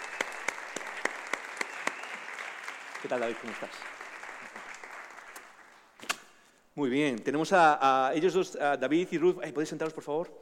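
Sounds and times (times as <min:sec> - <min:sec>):
audience applause: 0:00.0 - 0:05.8
speech: 0:03.0 - 0:04.0, 0:06.8 - 0:10.4.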